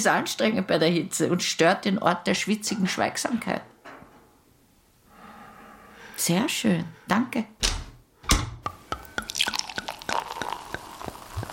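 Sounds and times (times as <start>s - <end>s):
speech: 0.0s - 3.7s, 6.2s - 7.7s
faint hiss: 0.0s - 11.5s
sauna water dripping: 8.7s - 11.5s.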